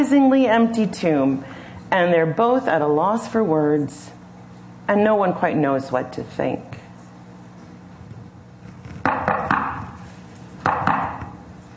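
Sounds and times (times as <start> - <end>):
speech: 0.0 - 4.2, 4.9 - 6.8
patterned secret knock on a wooden door: 10.6 - 11.3.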